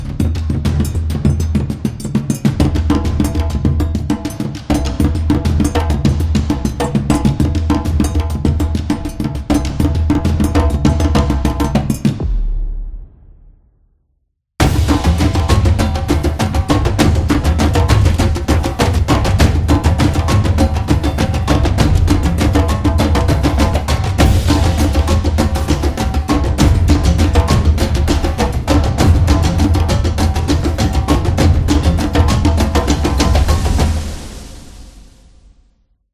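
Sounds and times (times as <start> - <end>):
African tribal drums: 0.0 - 13.4, 14.6 - 35.3.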